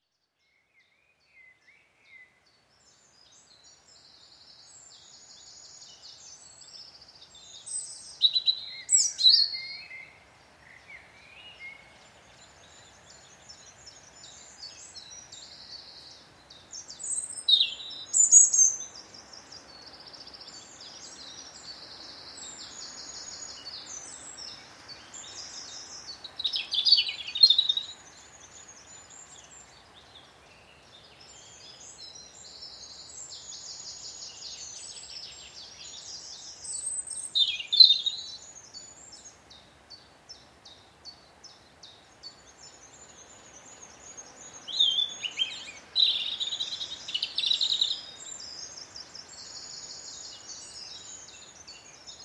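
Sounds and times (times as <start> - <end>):
birds singing in a forest: 0.0 - 52.2.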